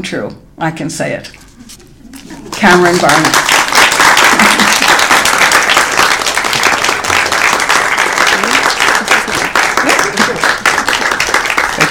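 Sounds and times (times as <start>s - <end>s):
speech: 0.0s - 1.7s, 2.4s - 4.6s
audience applause welcoming a speaker: 3.0s - 11.8s.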